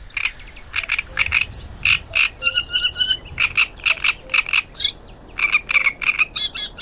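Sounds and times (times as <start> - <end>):
great reed warbler song: 0.0 - 6.7.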